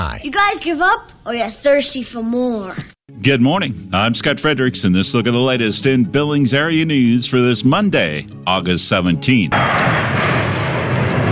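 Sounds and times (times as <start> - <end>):
speech: 0.0 - 10.1
Navy Blue Angels jets roaring into Billings: 9.5 - 11.3.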